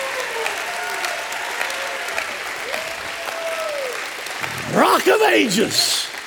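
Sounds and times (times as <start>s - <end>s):
audience clapping: 0.0s - 6.2s
audience cheering and whooping with shouted praise: 2.6s - 6.1s
speech: 4.8s - 6.1s.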